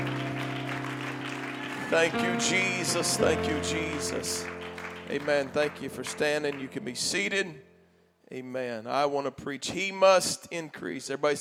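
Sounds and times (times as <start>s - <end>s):
audience clapping in a steady rhythm: 0.0s - 7.3s
organ or keyboard chords: 0.0s - 8.0s
speech: 1.9s - 7.7s, 8.3s - 11.3s.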